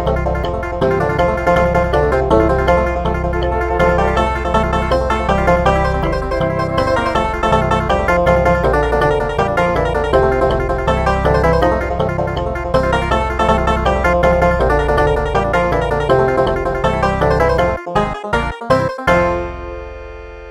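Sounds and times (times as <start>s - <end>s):
traditional African-American folk banjo: 0.0s - 19.8s
traditional African-American folk flute: 2.4s - 7.7s.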